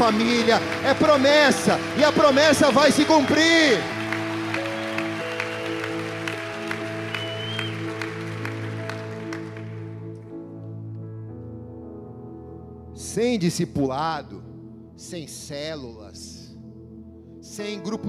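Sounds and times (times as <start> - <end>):
audience applauding: 0.0 - 10.1
speech: 0.1 - 4.0, 13.2 - 16.4, 17.5 - 18.0.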